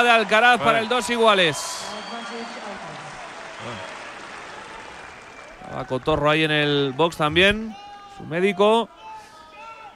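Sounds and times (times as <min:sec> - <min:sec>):
speech: 0:00.0 - 0:02.2, 0:05.7 - 0:09.0
tennis stadium crowd applauding: 0:00.0 - 0:07.2.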